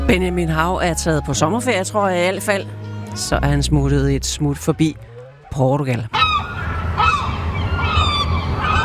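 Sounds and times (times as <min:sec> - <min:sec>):
speech: 0:00.1 - 0:06.2
seagulls crying: 0:06.1 - 0:08.8.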